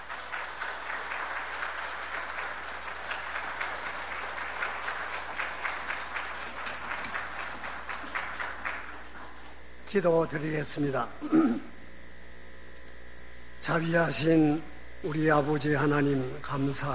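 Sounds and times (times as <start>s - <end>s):
audience applause welcoming the pastor: 0.0s - 9.6s
speech: 9.9s - 11.7s, 13.6s - 16.9s.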